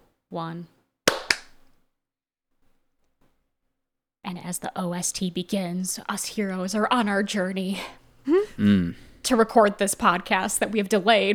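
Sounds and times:
speech: 0.3s - 0.8s, 4.3s - 11.3s
hand clap for audio sync: 1.1s - 1.7s.

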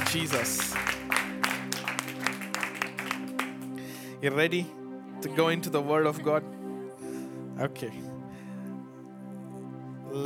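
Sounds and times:
audience clapping: 0.0s - 3.9s
speech: 0.1s - 1.4s, 4.2s - 6.5s, 7.6s - 8.1s.

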